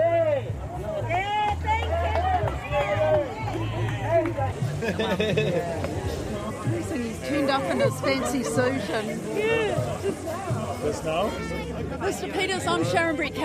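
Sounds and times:
people shouting: 0:00.0 - 0:04.6, 0:07.0 - 0:12.0
protest crowd cheering and calling out greetings: 0:00.0 - 0:12.7
laughter: 0:03.0 - 0:10.8
speech: 0:04.9 - 0:05.9, 0:07.5 - 0:13.4.

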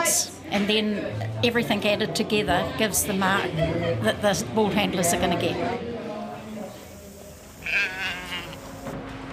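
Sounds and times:
speech: 0:00.1 - 0:06.0
sheep bleating in sheepyards: 0:07.6 - 0:08.8.

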